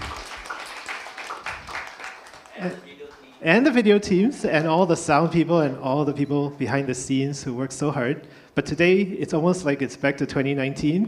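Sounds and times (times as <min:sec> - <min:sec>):
applause: 0:00.0 - 0:03.4
speech: 0:02.6 - 0:11.0.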